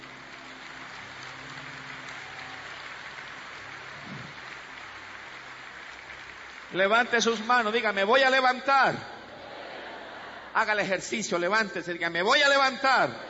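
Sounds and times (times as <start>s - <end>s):
audience applause: 0.0s - 9.4s
speech: 6.7s - 9.1s, 10.6s - 13.2s.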